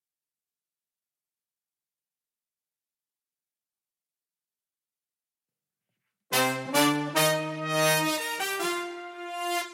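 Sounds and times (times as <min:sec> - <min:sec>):
brass instruments: 0:06.3 - 0:09.7.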